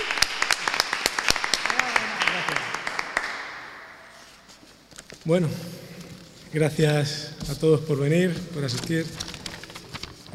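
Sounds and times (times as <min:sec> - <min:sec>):
audience applause: 0:00.0 - 0:04.2
speech: 0:05.2 - 0:05.8, 0:06.5 - 0:09.3.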